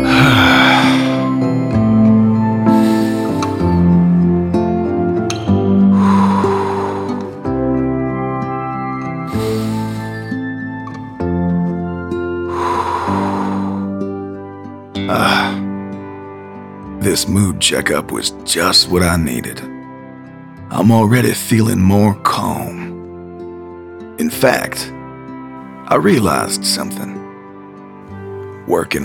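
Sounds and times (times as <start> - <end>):
deep breaths in and out during a guided calming exercise: 0.0 - 4.5, 5.4 - 7.9, 9.2 - 11.2, 12.3 - 14.3, 15.1 - 15.7
steady music bed: 0.0 - 29.0
speech: 17.6 - 19.7, 20.8 - 22.8, 24.4 - 24.9, 25.9 - 27.2, 28.7 - 29.0.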